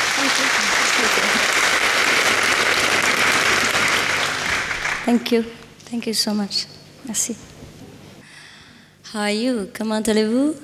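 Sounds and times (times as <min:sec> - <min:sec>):
audience applause: 0:00.0 - 0:05.2
speech: 0:05.1 - 0:07.6, 0:09.1 - 0:10.6.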